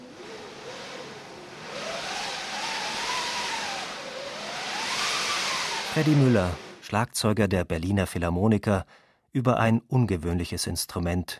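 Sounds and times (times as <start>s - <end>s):
wind machine whistling as drum turns under a stretched cloth: 0.0s - 6.9s
speech: 6.0s - 11.3s.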